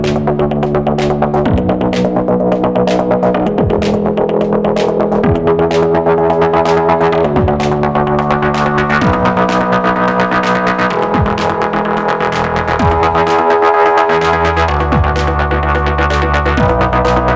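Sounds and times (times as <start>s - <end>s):
deep minimal ambient soundscape: 0.0s - 17.3s.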